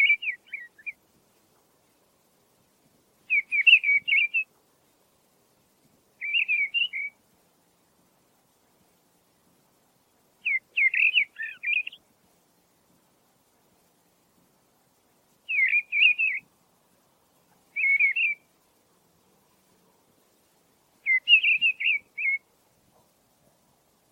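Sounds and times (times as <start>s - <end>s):
mistle thrush singing whistled phrases: 0.0s - 1.0s, 3.2s - 4.5s, 6.2s - 7.2s, 10.4s - 12.1s, 15.4s - 16.5s, 17.7s - 18.5s, 21.0s - 22.6s.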